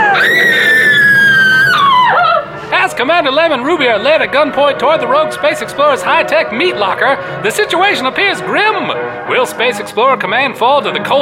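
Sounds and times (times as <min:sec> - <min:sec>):
character screaming in panic: 0:00.0 - 0:02.6
speech: 0:03.0 - 0:11.2.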